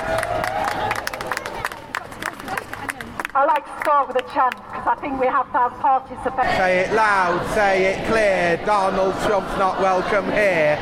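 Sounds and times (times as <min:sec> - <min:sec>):
crowd whooping and cheering at a Sheffield anti-racism rally: 0:00.0 - 0:01.6
crowd clapping at a Sheffield anti-racism rally: 0:00.0 - 0:04.6
speech: 0:03.4 - 0:10.8.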